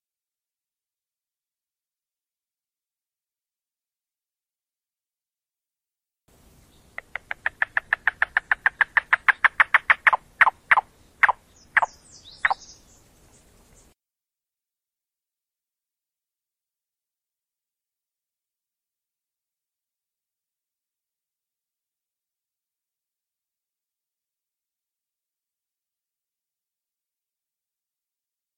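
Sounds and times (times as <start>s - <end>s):
yellow-billed cuckoo knocking call: 6.9s - 12.6s.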